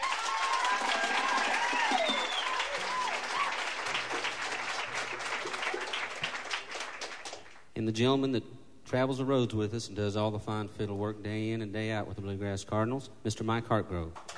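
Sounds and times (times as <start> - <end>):
bluegrass concert audience clapping to welcome a band member: 0.0 - 7.7
speech: 7.9 - 14.3.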